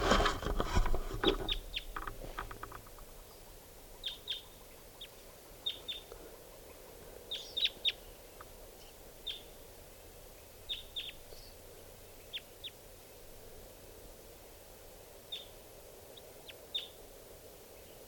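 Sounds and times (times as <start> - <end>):
rustling: 0.0 - 3.4
wild bird calling: 1.2 - 9.6.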